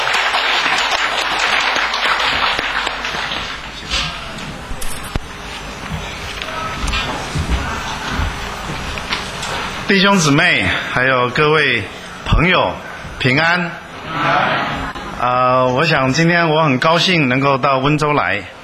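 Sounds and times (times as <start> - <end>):
audience applause from a room full of people: 0.0 - 4.5
thumps and rustles: 5.8 - 9.7
speech: 9.9 - 18.6.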